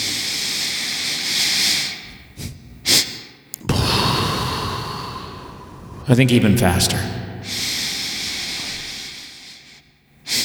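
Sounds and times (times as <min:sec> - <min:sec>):
breathing in through nose: 0:00.0 - 0:10.4
big exhale: 0:03.6 - 0:09.7
speech: 0:06.1 - 0:07.2.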